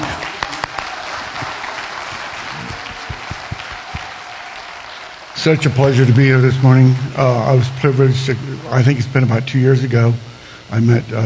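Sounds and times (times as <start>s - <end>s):
audience applause welcoming a Veterans Day speaker: 0.0s - 6.6s
speech: 5.4s - 11.2s.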